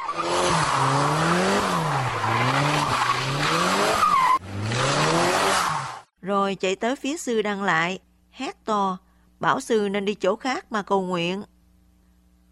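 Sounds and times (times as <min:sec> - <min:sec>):
truck engine accelerating: 0:00.0 - 0:06.1
truck tires screeching on the road: 0:00.0 - 0:06.1
speech: 0:06.5 - 0:11.5.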